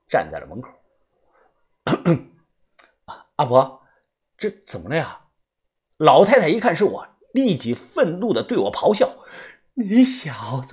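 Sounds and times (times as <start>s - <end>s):
speech: 0.1s - 0.8s, 2.0s - 2.3s, 3.1s - 3.8s, 4.4s - 5.2s, 6.0s - 10.7s
single cough: 1.9s - 2.4s.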